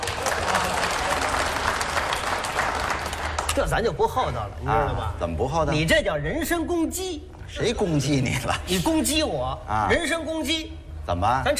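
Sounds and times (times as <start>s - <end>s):
audience applause: 0.0s - 3.6s
speech: 3.6s - 11.5s.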